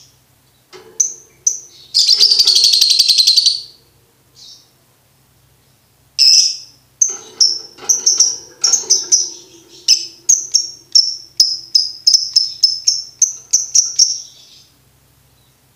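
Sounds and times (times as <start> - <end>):
lovebird chattering: 1.0 - 3.8, 6.2 - 14.6.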